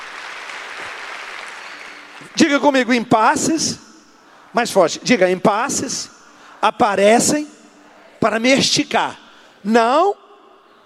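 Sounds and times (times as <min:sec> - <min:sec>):
audience applause: 0:00.0 - 0:02.4
speech: 0:02.2 - 0:03.9, 0:04.5 - 0:07.6, 0:08.2 - 0:10.2.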